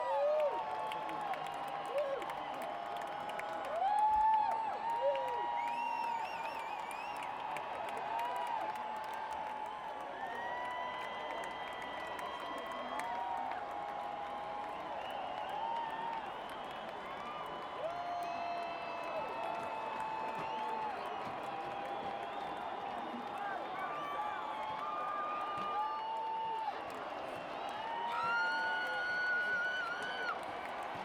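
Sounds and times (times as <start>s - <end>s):
stadium applause: 0.0s - 31.0s
stadium crowd cheering outdoors: 0.0s - 31.0s.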